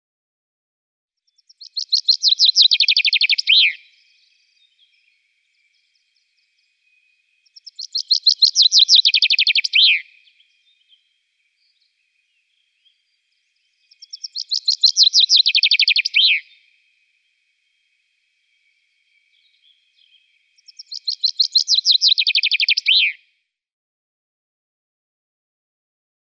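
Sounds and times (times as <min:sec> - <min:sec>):
common chaffinch song: 0:01.2 - 0:23.3.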